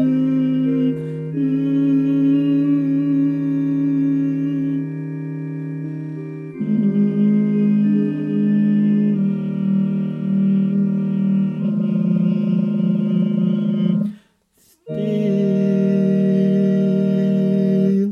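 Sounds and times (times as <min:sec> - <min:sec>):
tenor Christmas choir singing: 0:00.0 - 0:14.2, 0:14.9 - 0:18.0.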